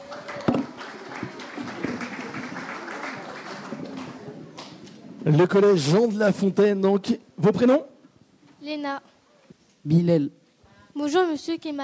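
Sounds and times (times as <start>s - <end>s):
audience applause: 0.0s - 4.8s
speech: 5.2s - 7.9s, 8.6s - 9.1s, 9.8s - 10.4s, 11.0s - 11.8s.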